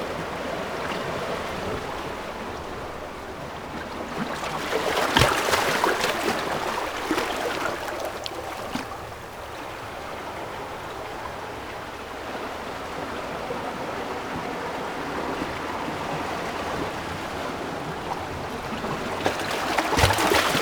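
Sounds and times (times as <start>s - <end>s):
waves: 0.0s - 20.6s.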